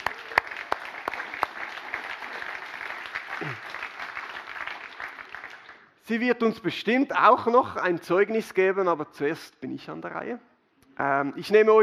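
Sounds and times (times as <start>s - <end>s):
short applause from audience: 0.0s - 5.8s
speech: 6.1s - 11.8s.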